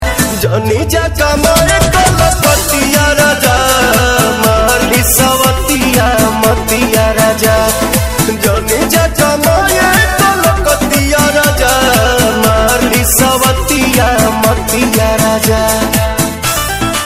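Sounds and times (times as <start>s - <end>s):
Bhojpuri DJ song: 0.0s - 17.0s.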